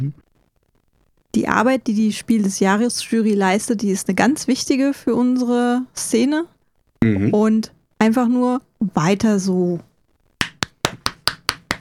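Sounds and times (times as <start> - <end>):
speech: 0.0 - 0.2, 1.3 - 9.9
hand clapping: 10.4 - 11.7.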